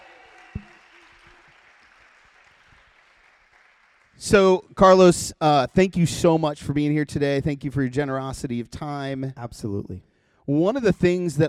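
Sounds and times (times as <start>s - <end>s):
live audience applause: 0.0s - 4.5s
speech: 4.2s - 11.4s.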